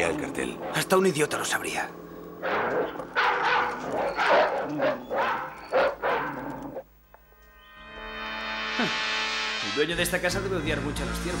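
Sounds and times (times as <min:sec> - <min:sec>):
speech: 0:00.0 - 0:03.2, 0:08.8 - 0:09.1, 0:09.7 - 0:11.3
chained dog barking: 0:02.4 - 0:06.5.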